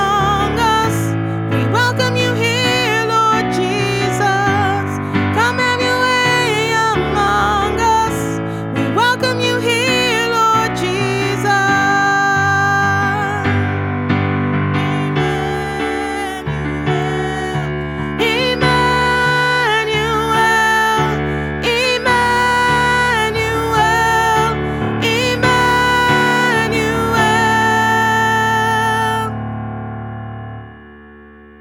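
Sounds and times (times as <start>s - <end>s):
soprano singing lead with Christmas choir: 0.0s - 29.9s
Christmas choir singing: 15.1s - 29.0s.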